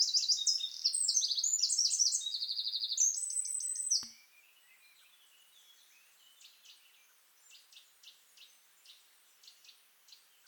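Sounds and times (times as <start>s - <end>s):
Eurasian wren song: 0.0s - 4.3s.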